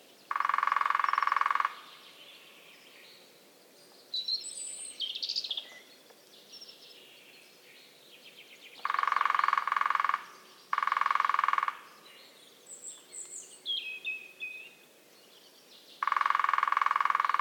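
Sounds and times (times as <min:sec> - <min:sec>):
lesser spotted woodpecker drumming in Belgium: 0:00.3 - 0:01.9, 0:08.8 - 0:12.0, 0:16.0 - 0:17.3.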